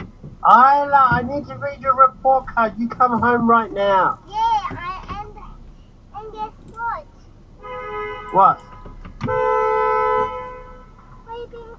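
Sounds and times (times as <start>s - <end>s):
speech: 0.4s - 4.8s, 8.3s - 8.7s
car horn honking: 7.6s - 11.4s.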